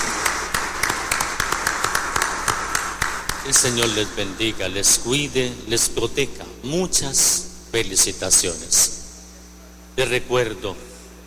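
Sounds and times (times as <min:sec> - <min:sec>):
applause: 0:00.0 - 0:04.1
speech: 0:03.4 - 0:09.0, 0:10.0 - 0:10.9.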